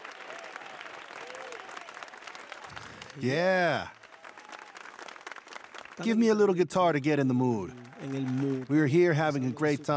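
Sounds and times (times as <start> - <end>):
musicians clapping on stage: 0.0 - 9.9
speech: 3.2 - 4.0, 6.0 - 9.9.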